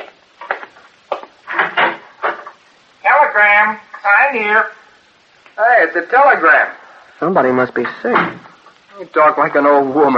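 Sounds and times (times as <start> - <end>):
door being opened: 1.5 - 2.5
speech: 3.4 - 4.8, 5.6 - 10.1.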